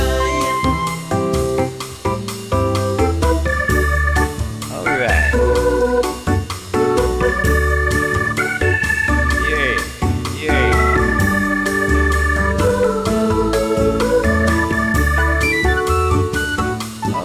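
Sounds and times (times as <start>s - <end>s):
bongos: 0.0s - 17.2s.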